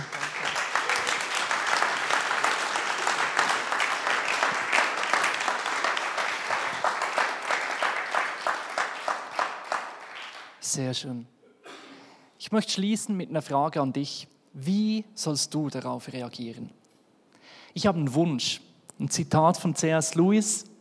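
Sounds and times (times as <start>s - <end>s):
audience applause: 0.0s - 10.6s
speech: 10.7s - 11.4s, 12.5s - 16.8s, 17.8s - 20.7s.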